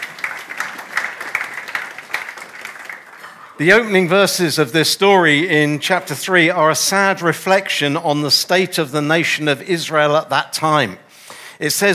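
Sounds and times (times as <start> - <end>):
audience applause: 0.0 - 3.7
speech: 3.6 - 11.0, 11.6 - 11.9.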